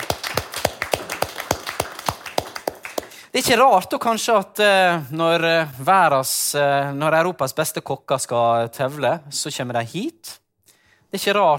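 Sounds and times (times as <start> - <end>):
audience clapping rhythmically for a Trøndelag farm's prize-winning cheese: 0.0 - 3.5
speech: 3.3 - 10.4, 11.1 - 11.5.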